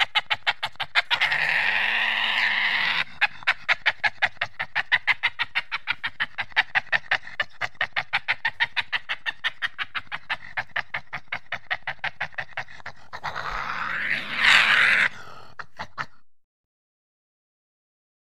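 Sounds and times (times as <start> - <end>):
angry badger screaming: 0.0 - 3.4, 11.7 - 15.5
badger grunting and barking: 0.0 - 16.3.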